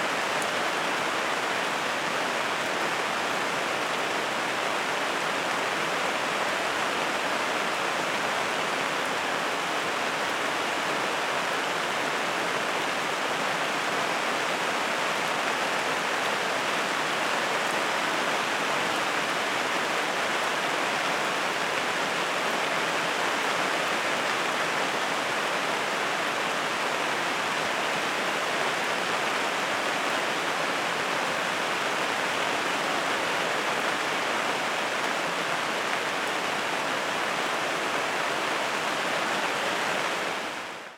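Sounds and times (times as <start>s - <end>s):
rain: 0.0s - 40.9s.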